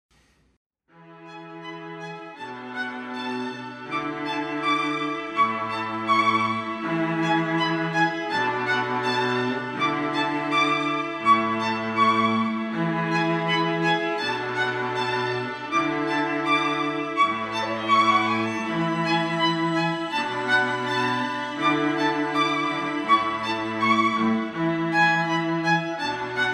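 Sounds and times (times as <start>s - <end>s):
musical trio: 1.3s - 26.5s.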